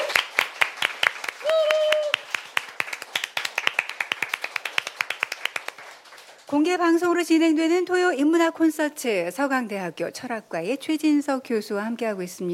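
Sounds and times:
audience applause: 0:00.0 - 0:06.6
speech: 0:06.5 - 0:12.5.

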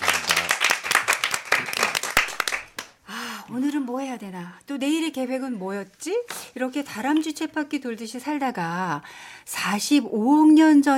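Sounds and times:
audience applause: 0:00.0 - 0:02.9
speech: 0:03.5 - 0:10.9.

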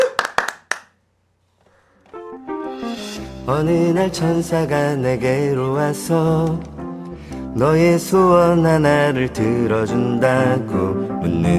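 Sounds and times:
audience hand claps: 0:00.0 - 0:01.0
speech: 0:03.5 - 0:06.7, 0:07.6 - 0:11.5.

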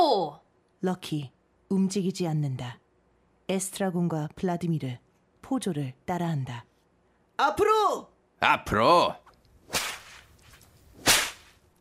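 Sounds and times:
speech: 0:00.3 - 0:02.8, 0:03.5 - 0:06.7, 0:07.4 - 0:09.8
whip cracks on stage: 0:09.7 - 0:11.6.

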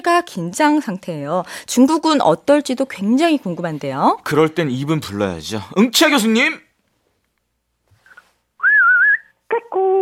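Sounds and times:
speech: 0:00.0 - 0:06.7, 0:09.6 - 0:09.9
person whistling in imitation of birdsong: 0:08.6 - 0:09.4.

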